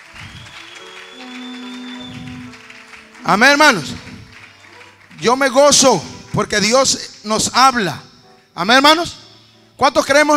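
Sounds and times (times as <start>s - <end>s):
sustained keyboard or organ chord: 0.0s - 6.6s
church audience applauding: 0.0s - 7.1s
speech: 3.2s - 4.0s, 5.2s - 9.2s, 9.8s - 10.3s.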